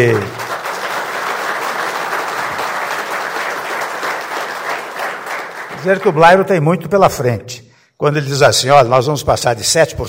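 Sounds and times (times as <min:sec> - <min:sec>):
speech: 0:00.0 - 0:00.4, 0:05.8 - 0:10.0
audience applause: 0:00.0 - 0:06.4.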